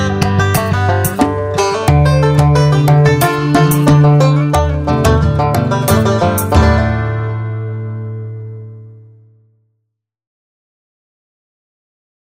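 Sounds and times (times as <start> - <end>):
banjo playing country pop: 0.0 - 9.3.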